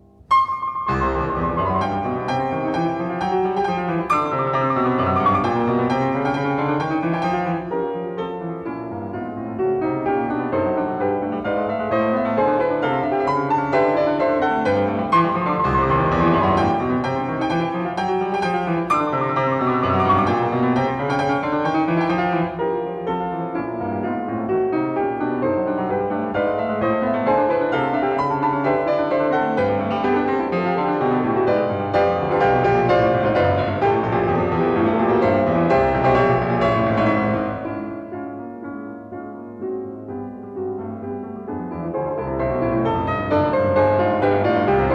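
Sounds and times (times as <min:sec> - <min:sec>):
piano allegro in C major: 0:00.0 - 0:44.9.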